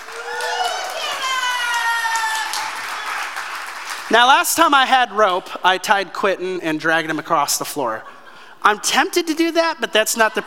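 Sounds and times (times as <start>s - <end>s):
audience round of applause: 0.0s - 4.1s
speech: 4.1s - 10.4s.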